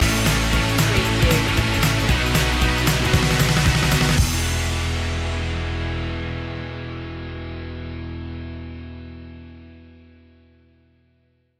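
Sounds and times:
indie rock stinger: 0.0s - 10.3s.

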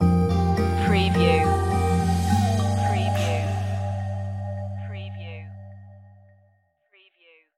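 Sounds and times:
music stinger: 0.0s - 6.3s.

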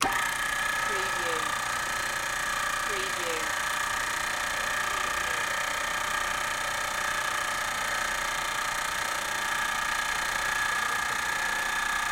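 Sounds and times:
motor running: 0.0s - 12.1s.

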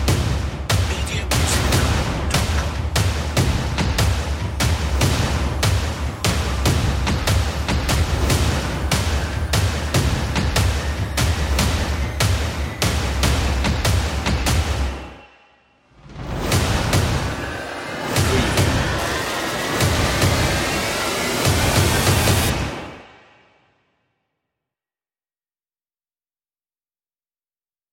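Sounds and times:
drums: 0.0s - 15.2s, 16.0s - 23.1s.

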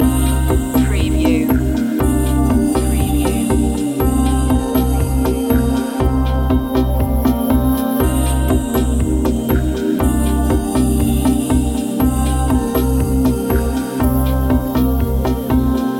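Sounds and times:
downtempo sunset music loop: 0.0s - 15.9s.

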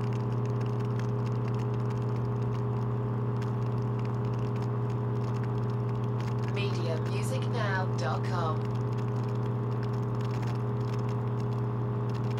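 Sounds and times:
water pump running: 0.0s - 12.3s.

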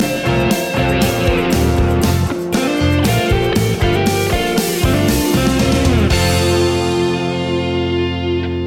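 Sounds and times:
wake-up pop music: 0.0s - 8.5s.

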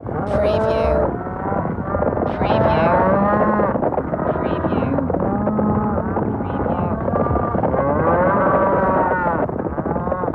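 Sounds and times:
cattle lowing in a chorus: 0.2s - 10.3s.

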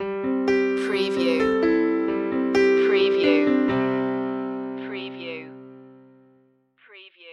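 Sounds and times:
piano stinger: 0.0s - 6.5s.

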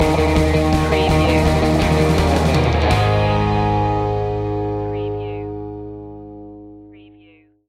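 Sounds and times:
surf music stinger: 0.0s - 5.4s.

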